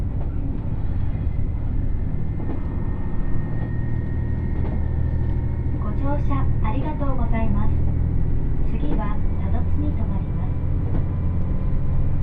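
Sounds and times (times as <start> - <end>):
Dosan Line limited express Nanpu No. 26 running: 0.0 - 12.2
people talking: 5.8 - 7.8, 8.7 - 10.6.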